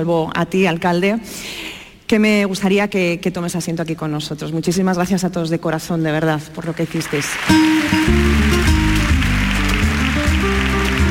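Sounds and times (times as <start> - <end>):
speech: 0.0 - 8.4
long applause: 7.1 - 11.0.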